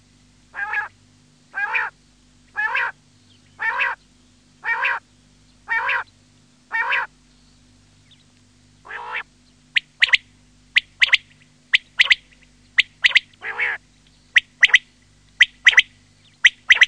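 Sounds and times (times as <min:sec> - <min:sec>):
quail repeating clipped three-note phrases: 0:00.5 - 0:03.0, 0:03.6 - 0:04.0, 0:04.6 - 0:05.0, 0:05.7 - 0:06.1, 0:06.7 - 0:07.1, 0:08.8 - 0:16.8.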